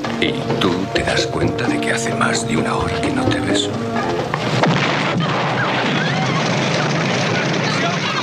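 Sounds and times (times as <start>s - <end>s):
speech: 0.2s - 5.5s
bomb explosion in a film scene: 4.3s - 8.2s.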